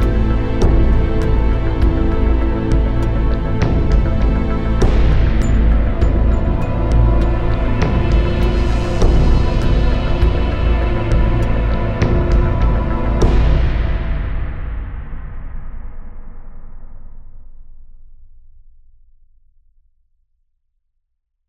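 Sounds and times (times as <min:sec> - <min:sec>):
100 BPM cinematic trailer music: 0:00.0 - 0:17.0.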